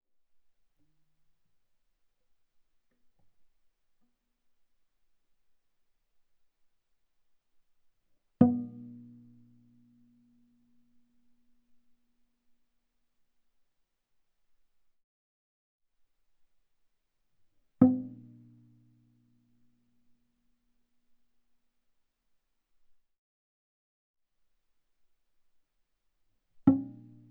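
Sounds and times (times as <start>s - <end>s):
viola pizzicato on the G string fortissimo: 8.4s - 9.3s, 26.7s - 27.2s.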